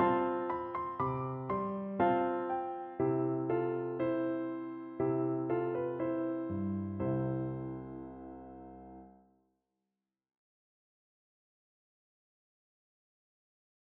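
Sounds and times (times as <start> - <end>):
piano lullaby: 0.0 - 9.2.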